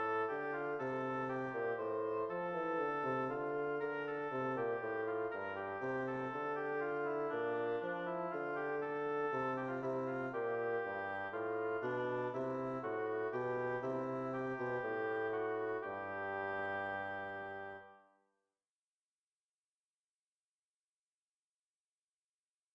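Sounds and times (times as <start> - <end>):
bassoon in a duo with oboe: 0.0 - 18.0
oboe in a duo with bassoon: 0.0 - 18.0.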